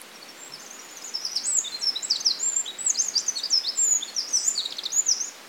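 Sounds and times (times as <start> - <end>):
Eurasian wren singing trills: 0.2 - 5.4.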